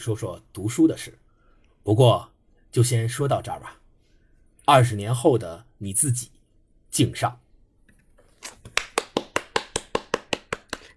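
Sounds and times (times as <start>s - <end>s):
speech: 0.0s - 1.2s, 1.8s - 3.8s, 4.7s - 7.4s
one person clapping: 8.7s - 10.9s.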